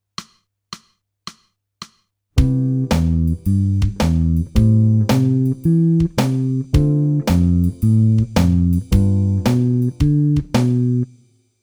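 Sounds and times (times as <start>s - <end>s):
jazz music: 2.4s - 11.0s.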